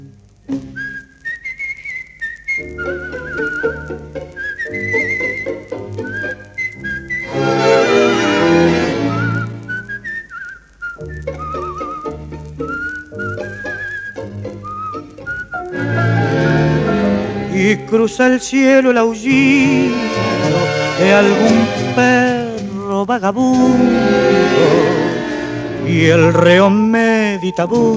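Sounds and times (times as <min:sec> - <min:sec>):
full instrumental backing music: 0:00.0 - 0:27.9
man whistling a lilting song melody: 0:00.5 - 0:07.4, 0:08.9 - 0:17.1, 0:25.2 - 0:27.9
speech: 0:18.0 - 0:20.4, 0:21.0 - 0:22.1, 0:23.1 - 0:25.0, 0:25.8 - 0:27.9.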